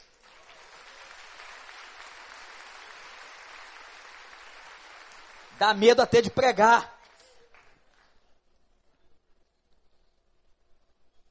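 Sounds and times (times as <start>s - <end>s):
audience applause: 0.0s - 8.3s
speech: 5.6s - 6.9s.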